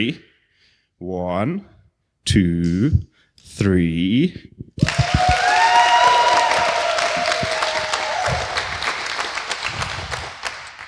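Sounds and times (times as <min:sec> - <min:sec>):
speech: 0:00.0 - 0:00.3, 0:01.0 - 0:06.0
loud applause: 0:04.8 - 0:10.8.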